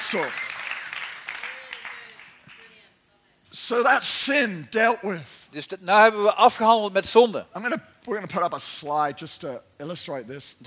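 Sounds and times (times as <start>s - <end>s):
applause: 0.0s - 2.8s
speech: 0.1s - 0.5s, 3.6s - 10.6s.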